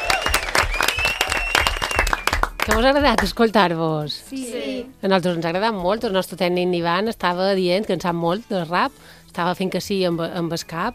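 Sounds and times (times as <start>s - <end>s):
audience applause: 0.0s - 2.9s
speech: 2.7s - 10.9s.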